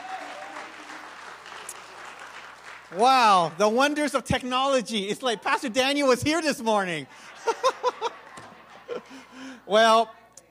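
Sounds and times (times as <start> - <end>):
audience applause: 0.0 - 4.2, 7.2 - 9.6
speech: 2.9 - 8.1, 9.7 - 10.2
laughter: 6.4 - 9.9.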